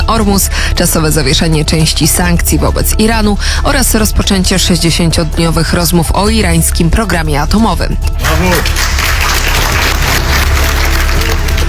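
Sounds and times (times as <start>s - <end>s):
speech: 0.1s - 9.1s
applause: 8.2s - 11.6s.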